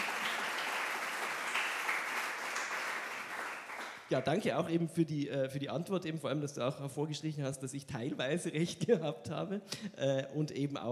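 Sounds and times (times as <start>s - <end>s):
audience applause: 0.0s - 4.1s
speech: 4.1s - 10.9s.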